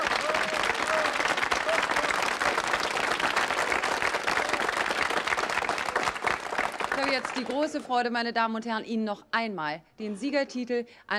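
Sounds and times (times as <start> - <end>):
studio audience applause: 0.0 - 7.9
speech: 7.2 - 11.1.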